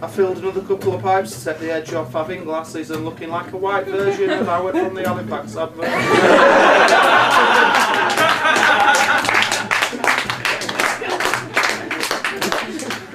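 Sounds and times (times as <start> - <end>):
speech: 0.0 - 9.3
crowd laughing and cheering: 5.8 - 13.1
audience applause: 5.9 - 13.1.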